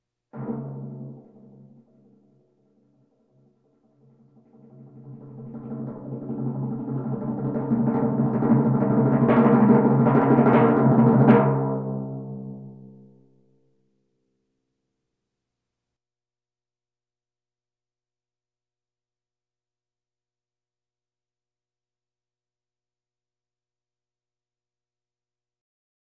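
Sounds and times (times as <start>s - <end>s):
bongos: 3.3s - 12.8s
drums: 4.3s - 12.5s.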